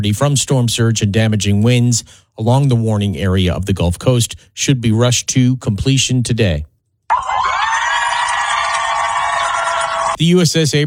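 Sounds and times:
speech: 0:00.0 - 0:06.7, 0:10.2 - 0:10.8
crowd cheering welcoming aircraft carrier home: 0:07.1 - 0:10.2.

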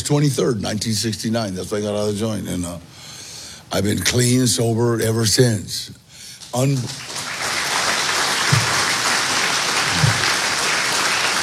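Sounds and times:
speech: 0:00.1 - 0:03.0, 0:03.7 - 0:07.2
audience clapping: 0:06.4 - 0:11.4.

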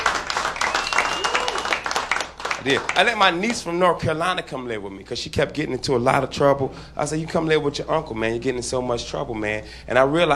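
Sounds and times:
audience clapping at a stand-up comedy show: 0:00.0 - 0:03.7
speech: 0:02.6 - 0:10.3.

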